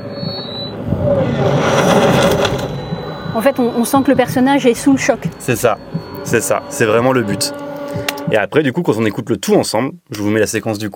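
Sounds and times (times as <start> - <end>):
noisy whirring sound: 0.0 - 8.5
audio feedback squeal: 0.0 - 8.6
low hum: 0.0 - 8.6
speech: 3.4 - 10.9.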